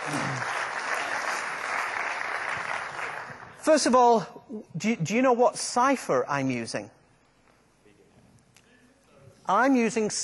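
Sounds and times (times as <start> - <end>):
audience applause: 0.0 - 3.6
speech: 3.6 - 7.0, 9.5 - 10.2.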